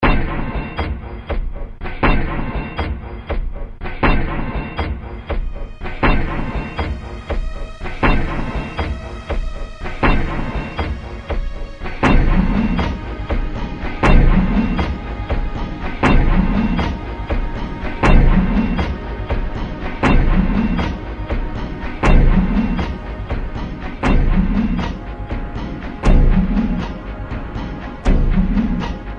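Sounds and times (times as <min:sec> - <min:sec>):
music: 0:00.0 - 0:29.1.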